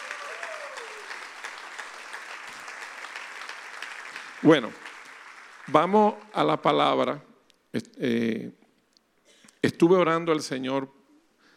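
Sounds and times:
audience applause: 0:00.0 - 0:06.4
speech: 0:04.4 - 0:04.8, 0:05.7 - 0:08.6, 0:09.6 - 0:11.0.

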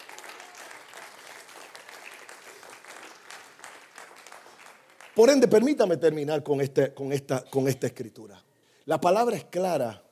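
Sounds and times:
audience applause: 0:00.0 - 0:05.5
speech: 0:05.2 - 0:10.0.

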